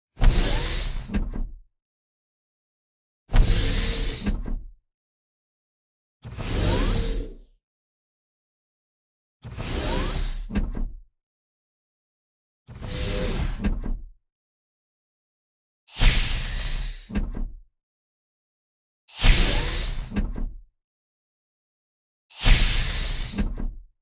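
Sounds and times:
sci-fi spaceship compartment door: 0.2s - 1.3s, 3.3s - 4.6s, 6.3s - 7.4s, 9.5s - 10.8s, 12.8s - 14.0s, 15.9s - 17.4s, 19.1s - 20.4s, 22.3s - 23.6s.

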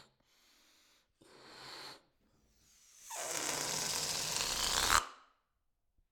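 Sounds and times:
balloon being blown up: 3.1s - 5.3s.

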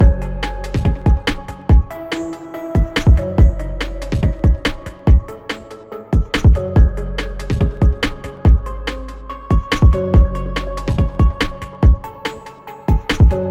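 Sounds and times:
drums: 0.0s - 13.4s
synths: 0.0s - 13.4s.

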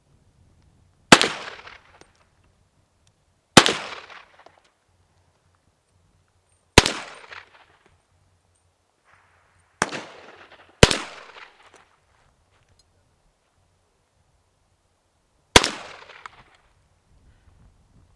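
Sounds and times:
M1 carbine gunshots: 1.1s - 2.0s, 3.6s - 4.4s, 6.8s - 7.8s, 9.8s - 11.8s, 15.6s - 16.4s.

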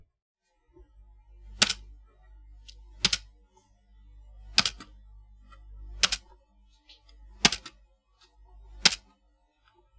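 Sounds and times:
keyboard spacebar tapping: 4.6s - 4.8s, 7.5s - 7.7s.

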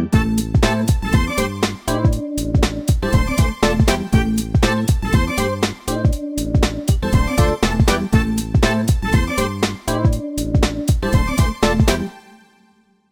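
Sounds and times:
funky old school beat: 0.2s - 12.1s.

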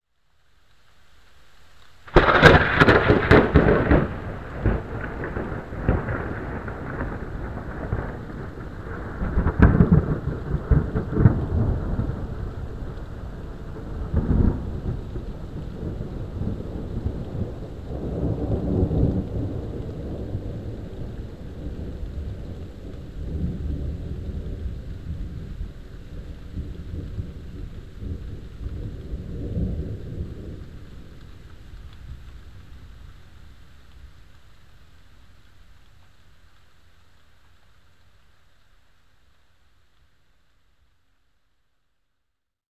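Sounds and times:
close lightning strike: 2.1s - 33.6s.

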